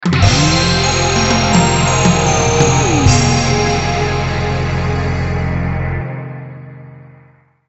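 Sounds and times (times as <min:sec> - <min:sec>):
game over jingle: 0:00.1 - 0:05.7.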